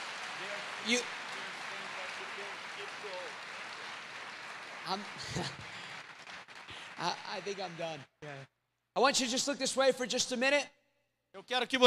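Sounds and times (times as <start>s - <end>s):
audience applause: 0.0s - 8.5s
speech: 0.8s - 1.2s, 4.9s - 5.7s, 7.0s - 11.8s
laughter: 5.0s - 6.0s.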